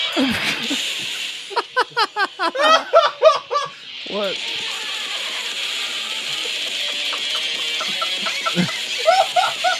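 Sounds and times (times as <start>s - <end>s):
speech: 0.2s - 2.7s, 4.1s - 4.6s
laughter: 0.2s - 3.8s, 6.2s - 9.7s
parrot squawking and chirping: 6.9s - 9.7s.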